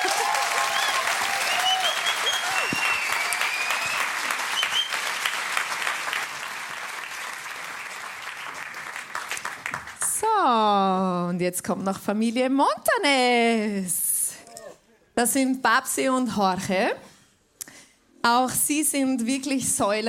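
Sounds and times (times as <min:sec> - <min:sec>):
audience applause: 0:00.0 - 0:10.1
speech: 0:11.4 - 0:14.0, 0:15.2 - 0:17.1, 0:18.2 - 0:20.0.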